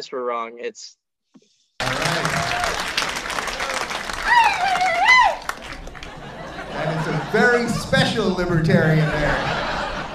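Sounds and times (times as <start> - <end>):
speech: 0.0 - 3.2, 6.8 - 9.6
audience applause: 1.8 - 10.1
laughter: 1.8 - 10.1
rising whoop or whistle: 4.2 - 5.5.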